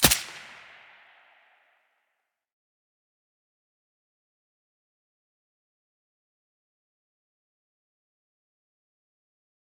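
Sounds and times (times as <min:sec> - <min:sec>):
silenced gunshot in mono: 0:00.0 - 0:01.4.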